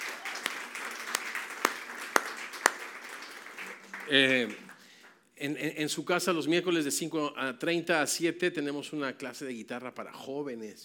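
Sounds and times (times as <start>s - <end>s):
audience applause: 0.0s - 4.9s
speech: 4.1s - 4.6s, 5.4s - 10.8s.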